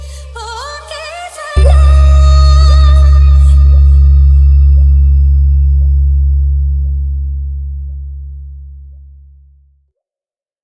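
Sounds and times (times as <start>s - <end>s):
Hindi song: 0.3s - 7.2s.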